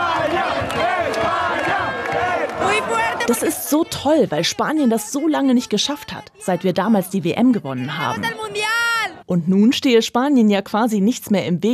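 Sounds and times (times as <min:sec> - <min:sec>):
football fans cheering in fan zone: 0:00.0 - 0:09.2
speech: 0:03.3 - 0:08.4, 0:09.3 - 0:11.7.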